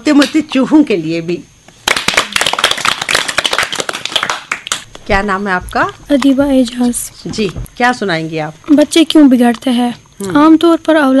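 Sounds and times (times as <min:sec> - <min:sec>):
speech: 0:00.0 - 0:01.5, 0:05.1 - 0:11.1
audience clapping: 0:01.8 - 0:04.9.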